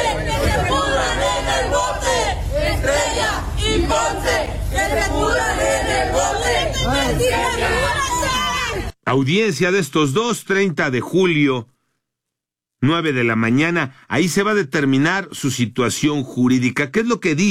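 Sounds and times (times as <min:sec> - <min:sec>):
protesters shouting: 0:00.0 - 0:09.0
speech: 0:09.1 - 0:11.7, 0:12.8 - 0:17.4.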